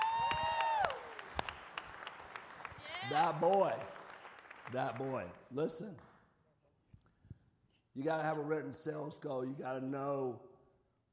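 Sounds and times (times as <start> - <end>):
audience clapping: 0.0 - 6.2
speech: 3.1 - 4.0, 4.7 - 6.1, 8.0 - 10.5.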